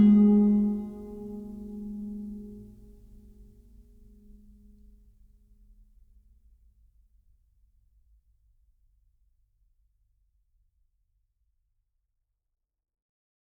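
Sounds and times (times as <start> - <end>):
guzheng playing: 0.0 - 2.6.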